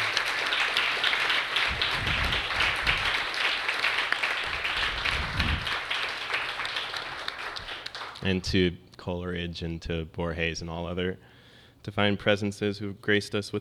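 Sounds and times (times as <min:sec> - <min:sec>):
audience applause: 0:00.0 - 0:08.2
speech: 0:08.2 - 0:13.5.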